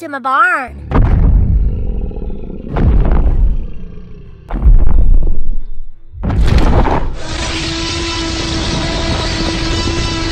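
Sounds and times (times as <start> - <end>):
speech: 0.0 - 1.0
loud creature roar: 0.7 - 5.1, 7.2 - 10.3.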